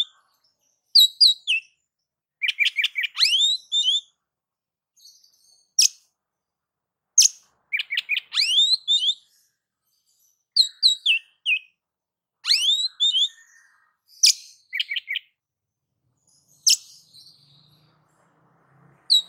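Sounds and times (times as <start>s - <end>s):
oriental magpie-robin singing: 0.0s - 4.2s, 5.0s - 6.2s, 7.2s - 11.8s, 12.4s - 15.4s, 16.1s - 18.0s, 19.0s - 19.2s.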